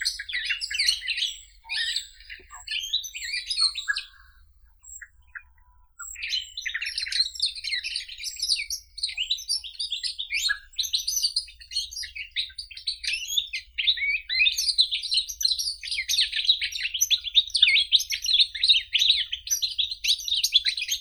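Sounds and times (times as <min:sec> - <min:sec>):
goldfinch Carduelis carduelis: 0:00.0 - 0:20.9.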